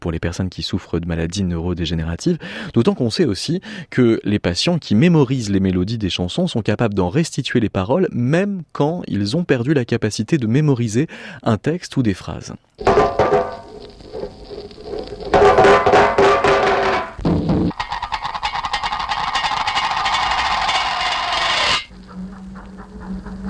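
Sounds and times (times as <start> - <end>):
speech: 0.0 - 13.3
musique concrète made from clattering saucepans: 12.8 - 13.7, 15.3 - 21.9.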